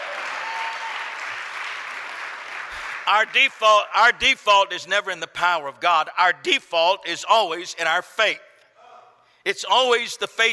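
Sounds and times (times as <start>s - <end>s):
audience clapping hands: 0.0s - 3.6s
speech: 3.1s - 8.5s, 9.4s - 10.5s.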